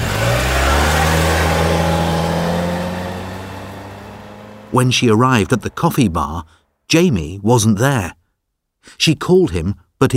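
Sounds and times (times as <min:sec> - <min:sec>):
car driving away fast: 0:00.0 - 0:06.2
speech: 0:04.7 - 0:08.2, 0:08.8 - 0:10.1.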